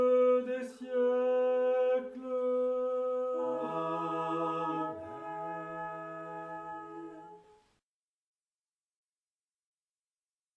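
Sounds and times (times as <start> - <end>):
litany chant: 0.0 - 7.5.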